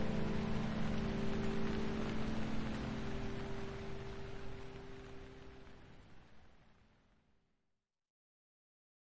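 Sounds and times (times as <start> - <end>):
calming piano music: 0.0 - 6.2
rain: 0.0 - 7.5.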